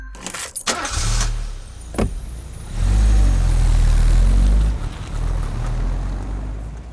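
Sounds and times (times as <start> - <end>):
car engine: 0.2 - 6.9.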